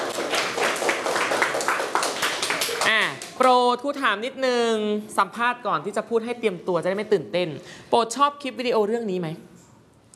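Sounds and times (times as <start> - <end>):
applause: 0.0 - 3.4
speech: 3.1 - 9.5.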